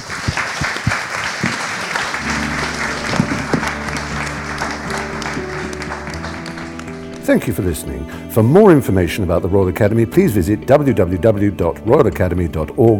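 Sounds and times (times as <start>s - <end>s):
audience applause: 0.0s - 7.5s
speech: 7.3s - 12.9s.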